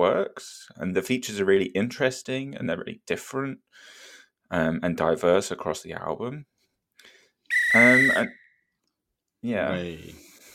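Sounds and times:
speech: 0.0s - 6.5s, 7.7s - 8.4s, 9.4s - 10.3s
loud alarm: 7.5s - 8.4s.

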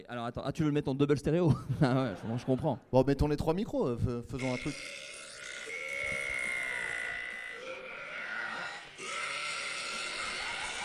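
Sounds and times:
speech: 0.0s - 5.1s
laughter: 1.5s - 2.8s, 9.4s - 10.8s
loud burp: 4.4s - 10.8s
shouted vocal cry: 4.4s - 10.8s.

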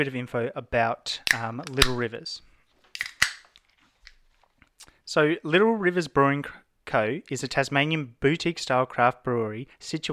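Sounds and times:
speech: 0.0s - 2.5s, 5.1s - 10.1s
beer cans cracking open: 2.9s - 4.2s.

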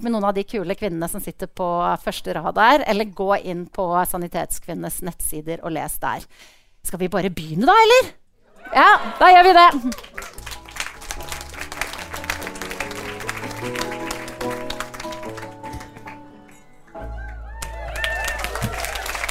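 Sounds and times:
speech: 0.0s - 10.4s, 13.6s - 14.0s
audience applause in a cellar venue at Lille Ole Bull in Bergen: 9.1s - 19.2s.

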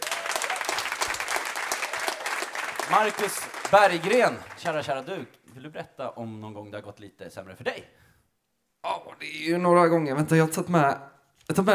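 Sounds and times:
audience applause: 0.0s - 5.3s
speech: 2.9s - 8.0s, 8.8s - 11.7s.

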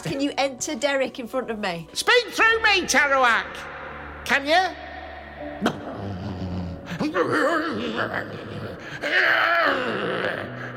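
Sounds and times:
speech: 0.0s - 4.8s, 5.4s - 5.8s, 7.0s - 10.6s
human voice imitating a polar bear wail: 5.6s - 10.6s.

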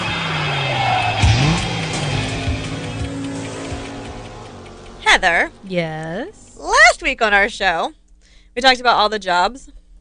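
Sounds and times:
car engine revving: 0.0s - 7.7s
speech: 5.2s - 6.4s, 7.0s - 8.0s, 8.6s - 9.8s.

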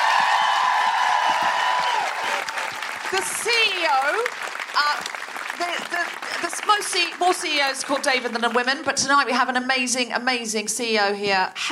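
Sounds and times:
crowd whooping and cheering: 0.0s - 4.9s
audience applause: 0.0s - 8.8s
speech: 3.1s - 11.6s.

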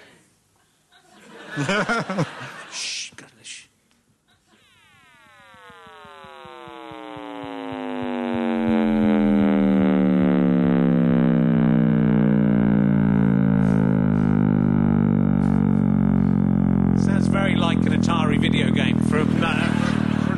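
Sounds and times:
laughter: 0.9s - 3.1s, 19.4s - 20.3s
speech: 1.6s - 2.9s
frequency-boosted sound of the Big Bang: 6.2s - 20.3s.

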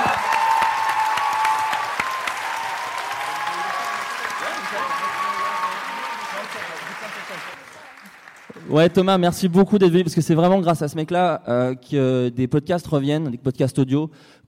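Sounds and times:
people whooping and shouting: 0.0s - 7.5s
crowd applauding and cheering: 0.0s - 9.2s
speech: 8.7s - 14.4s.

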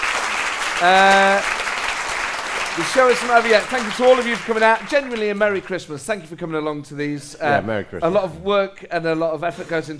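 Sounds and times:
crowd applause: 0.0s - 5.7s
speech: 0.8s - 1.6s, 2.8s - 9.9s.

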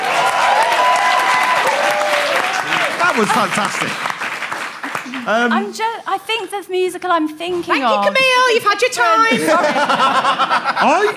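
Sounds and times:
audience applauding a performer: 0.0s - 5.6s
laughter: 3.0s - 4.0s, 9.1s - 11.1s
speech: 3.2s - 4.1s, 5.1s - 11.1s.

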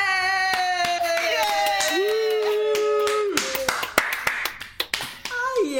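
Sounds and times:
clapping: 0.2s - 5.7s.

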